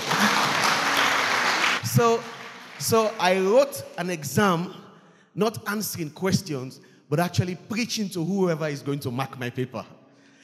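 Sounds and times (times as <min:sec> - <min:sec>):
church congregation clapping: 0:00.0 - 0:04.5
speech: 0:02.0 - 0:04.8, 0:05.4 - 0:10.0.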